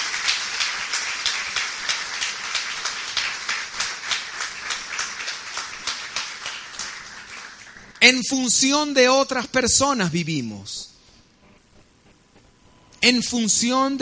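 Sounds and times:
audience applause: 0.0s - 8.0s
speech: 8.1s - 10.9s, 13.0s - 13.9s.

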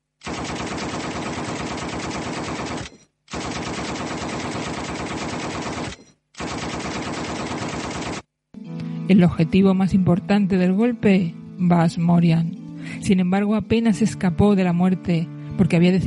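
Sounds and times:
machine-gun fire in a warehouse shooting: 0.2s - 8.3s
speech: 9.1s - 16.0s.

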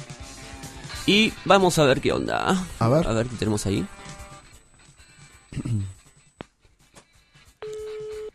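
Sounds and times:
speech: 1.1s - 4.0s
telephone line tone on an unanswered call: 7.6s - 8.3s.

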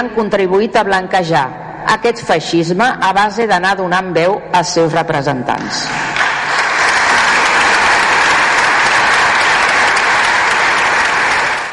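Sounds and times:
speech: 0.0s - 6.2s
audience ovation applause: 6.2s - 11.7s.

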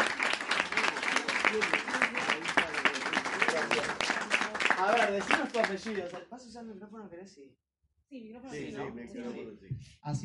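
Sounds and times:
crowd applause: 0.0s - 6.2s
speech: 1.5s - 1.9s, 4.9s - 10.2s.

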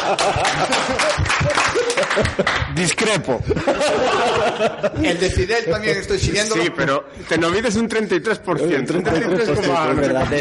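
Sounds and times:
applause: 0.0s - 3.2s
laughter: 0.0s - 6.8s, 8.6s - 10.3s
speech: 0.1s - 10.3s.

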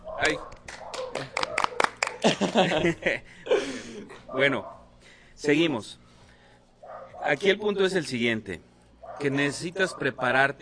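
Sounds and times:
speech: 0.2s - 1.4s, 2.2s - 3.4s, 4.3s - 4.8s, 5.4s - 6.0s, 7.2s - 10.6s
small group applause: 0.2s - 2.6s
laughter: 2.0s - 4.3s.

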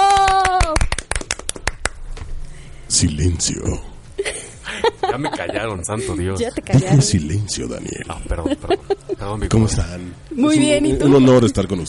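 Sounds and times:
small group clapping in studio: 0.0s - 2.2s
speech: 2.9s - 3.9s, 5.2s - 11.8s
laughter: 4.2s - 6.4s, 8.1s - 9.5s.

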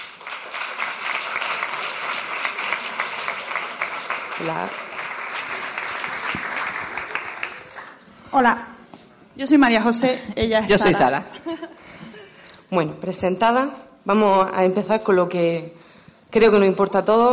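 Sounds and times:
audience applause: 0.0s - 8.1s
speech: 4.4s - 4.8s, 8.3s - 8.7s, 9.4s - 11.4s, 12.7s - 17.3s.

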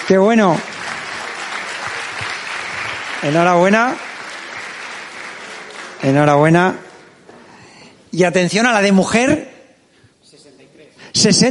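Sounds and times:
audience applause: 0.0s - 7.1s
speech: 0.1s - 0.7s, 3.2s - 4.0s, 6.0s - 6.8s, 8.1s - 9.5s, 11.2s - 11.4s.

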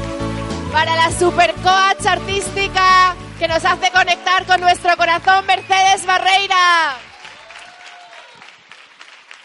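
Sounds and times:
speech: 0.8s - 7.1s
audience applause: 3.6s - 9.4s.

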